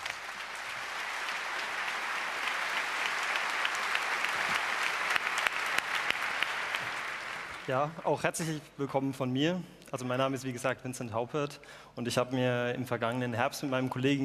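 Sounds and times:
crowd clapping: 0:00.0 - 0:08.4
speech: 0:07.7 - 0:14.2.

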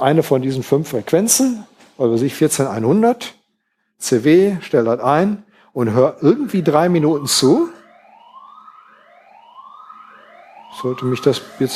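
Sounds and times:
speech: 0:00.0 - 0:03.4, 0:04.0 - 0:07.8, 0:10.8 - 0:11.7
alarm system siren: 0:05.9 - 0:11.7.

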